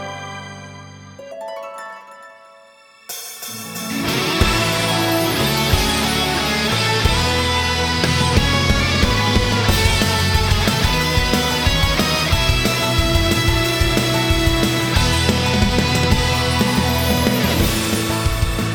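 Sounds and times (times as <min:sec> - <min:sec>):
short instrumental background music: 0:03.1 - 0:18.7.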